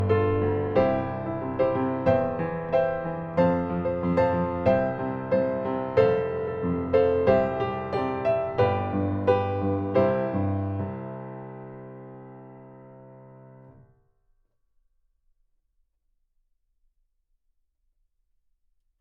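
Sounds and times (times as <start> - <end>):
piano: 0.0 - 14.0.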